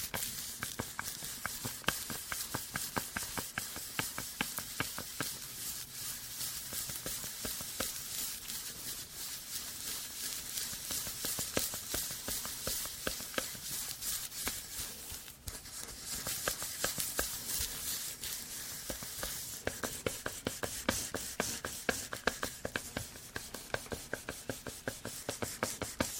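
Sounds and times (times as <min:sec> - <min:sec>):
hair brushing: 0:00.0 - 0:26.1
tapping: 0:00.1 - 0:05.4, 0:10.6 - 0:26.1.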